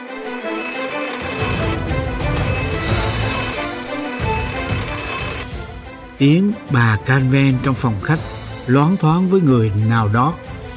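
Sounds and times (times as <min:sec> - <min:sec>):
doorbell ringing insistently: 0:00.0 - 0:05.6
speech: 0:06.2 - 0:10.5.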